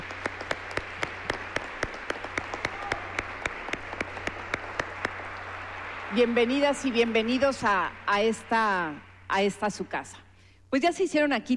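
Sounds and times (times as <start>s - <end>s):
audience applause: 0.0s - 9.2s
low steady hum: 0.0s - 11.5s
speech: 6.2s - 11.5s.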